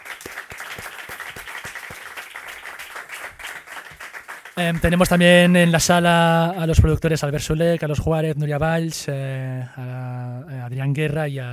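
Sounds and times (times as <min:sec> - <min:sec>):
audience applause: 0:00.0 - 0:05.1
speech: 0:04.6 - 0:11.5.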